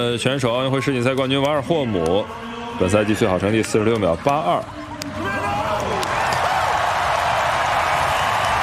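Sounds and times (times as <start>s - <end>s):
speech: 0.2s - 5.2s
stadium crowd applauding and cheering: 5.3s - 8.6s.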